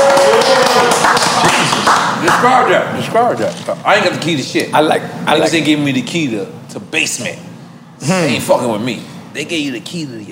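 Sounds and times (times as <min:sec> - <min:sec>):
rapid hand clapping: 0:00.0 - 0:02.6
speech: 0:02.4 - 0:10.3.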